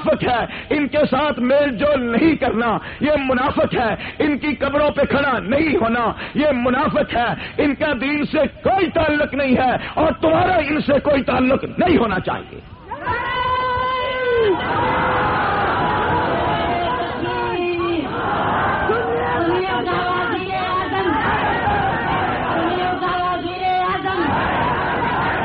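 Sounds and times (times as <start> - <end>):
speech: 0.0 - 13.2, 14.4 - 15.1
shouting and babble: 12.9 - 25.4
crowd chanting slogans: 14.5 - 23.3, 24.0 - 25.4.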